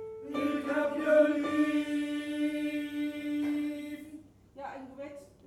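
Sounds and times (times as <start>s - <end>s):
tenor singing: 0.2s - 4.3s.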